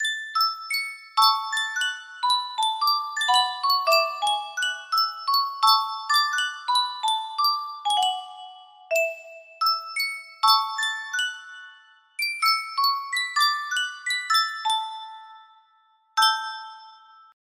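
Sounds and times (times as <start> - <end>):
Yunsheng music box melody: 0.0 - 17.4.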